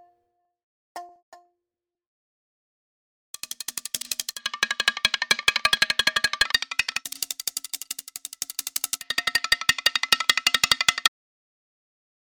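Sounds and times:
music loops: 0:03.5 - 0:11.1.

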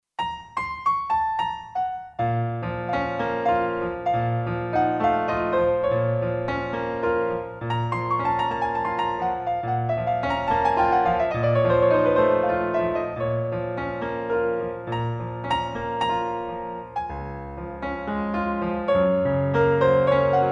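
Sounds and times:
Boesendorfer 290 piano nocturne: 0:00.2 - 0:20.4.

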